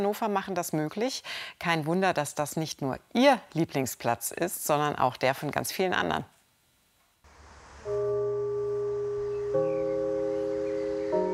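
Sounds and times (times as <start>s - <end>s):
speech: 0.0s - 6.4s
cinema gong chiming: 7.9s - 11.3s.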